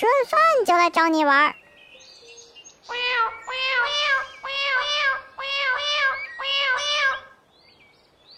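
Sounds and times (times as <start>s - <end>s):
speech: 0.0s - 1.6s
kitten meowing melodically: 2.9s - 7.2s.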